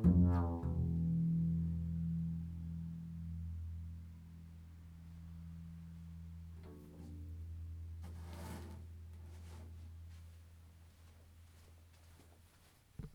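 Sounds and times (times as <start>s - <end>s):
bass melody: 0.0s - 10.7s.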